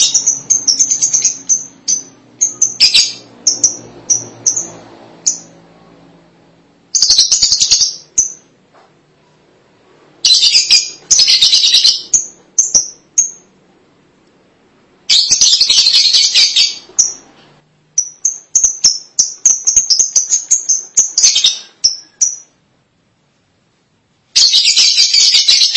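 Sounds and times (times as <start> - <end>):
lovebird chirping and chattering: 0.0 - 5.6, 6.9 - 8.5, 10.2 - 13.5, 15.1 - 17.3, 18.0 - 22.6, 24.4 - 25.7.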